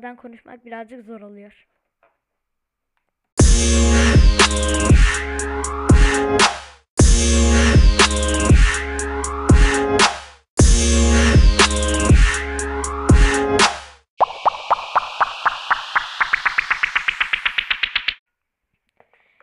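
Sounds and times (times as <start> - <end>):
speech: 0.0 - 1.8, 4.4 - 6.6
rhythmic music phrase with a strong beat: 3.4 - 18.2.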